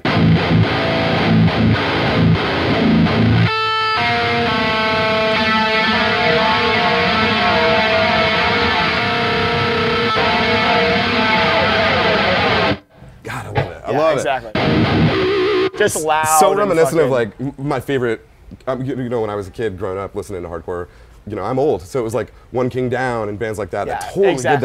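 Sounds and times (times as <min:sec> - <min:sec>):
electric guitar through two stacked distortion pedals: 0:00.0 - 0:13.0, 0:13.6 - 0:17.0
speech: 0:14.1 - 0:15.0, 0:15.8 - 0:24.6.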